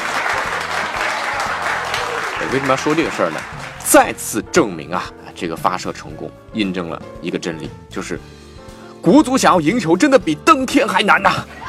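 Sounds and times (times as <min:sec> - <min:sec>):
audience applause: 0:00.0 - 0:04.0
speech: 0:02.5 - 0:08.4, 0:09.0 - 0:11.6.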